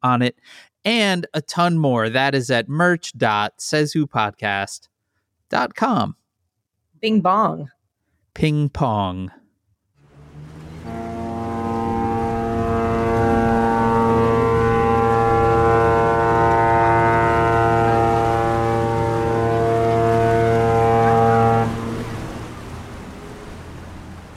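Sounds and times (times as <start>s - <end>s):
speech: 0.0s - 4.9s, 5.5s - 6.2s, 7.0s - 7.8s, 8.4s - 9.4s
cruise ship horn blast: 10.0s - 24.3s.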